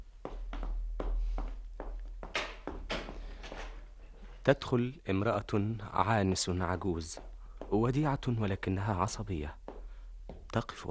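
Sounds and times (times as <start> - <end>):
footsteps walking toward the apartment door: 0.0 - 4.5, 6.3 - 10.8
speech: 4.4 - 9.6, 10.5 - 10.8.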